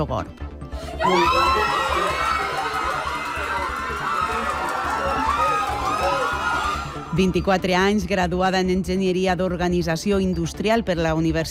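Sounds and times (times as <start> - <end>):
speech: 0.0 - 2.0, 7.2 - 11.4
crowd cheering and shrieking in celebration: 0.8 - 7.5
high-pitched screams: 0.9 - 7.2.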